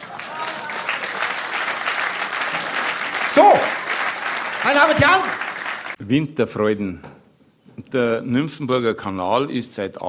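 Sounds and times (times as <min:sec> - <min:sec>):
audience applause: 0:00.0 - 0:06.0
speech: 0:04.7 - 0:05.4, 0:06.0 - 0:07.1, 0:07.9 - 0:10.0.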